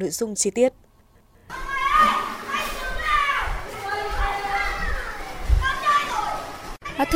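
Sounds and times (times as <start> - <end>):
children shouting and squealing at an indoor play area: 1.5 - 7.1.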